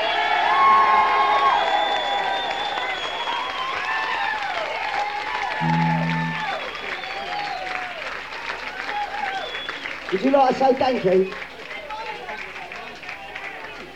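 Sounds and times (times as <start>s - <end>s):
cheering from live audience: 0.0s - 9.5s
applause from live audience: 0.0s - 13.9s
low hum: 5.6s - 6.6s
speech: 10.2s - 11.4s.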